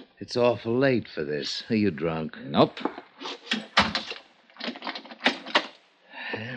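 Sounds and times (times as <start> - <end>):
speech: 0.2 - 3.4
door closing: 2.7 - 5.8
door locking: 3.4 - 5.8.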